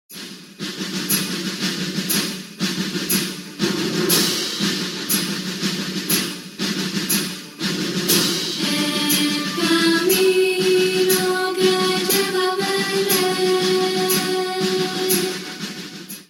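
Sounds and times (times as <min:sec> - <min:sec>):
song: 0:00.2 - 0:16.2.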